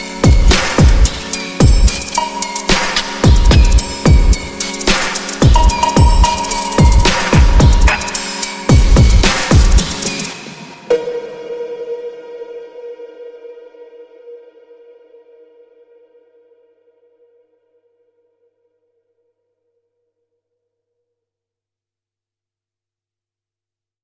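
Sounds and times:
slowed reverb music: 0.0 - 15.6.

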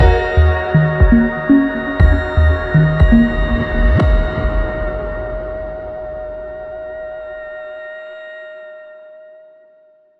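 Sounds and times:
musical stinger: 0.0 - 7.8.

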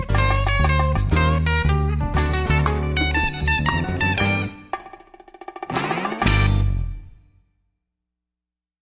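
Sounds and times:
guitar solo underscore: 0.0 - 4.6, 5.7 - 7.0.

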